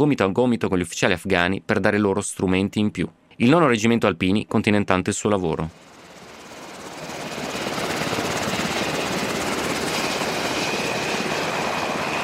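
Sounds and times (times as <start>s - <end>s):
speech: 0.0s - 5.9s
American Black Hawk helicopter rotor chop landing at night at a military base: 5.7s - 12.2s.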